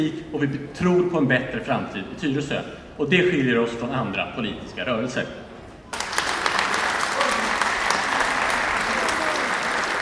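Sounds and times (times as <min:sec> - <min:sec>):
speech: 0:00.0 - 0:05.4
audience applause after speech: 0:05.9 - 0:09.9.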